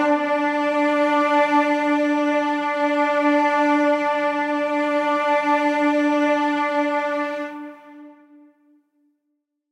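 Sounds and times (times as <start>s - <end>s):
cello playing in A minor: 0.0s - 8.5s.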